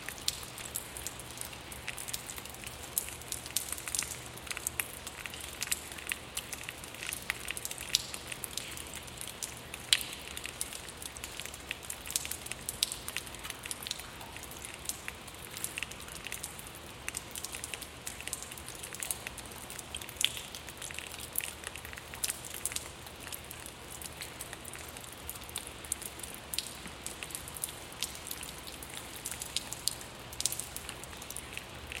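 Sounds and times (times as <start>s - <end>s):
water dripping in a cave: 0.0s - 31.9s.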